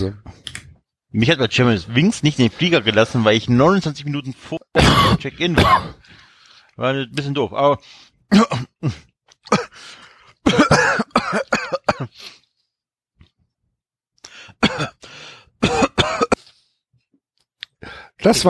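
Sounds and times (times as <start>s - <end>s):
speech: 0.0s - 0.5s, 1.1s - 6.2s, 6.8s - 9.6s, 18.2s - 18.4s
coughing: 4.8s - 6.0s, 8.3s - 12.2s, 14.6s - 16.6s.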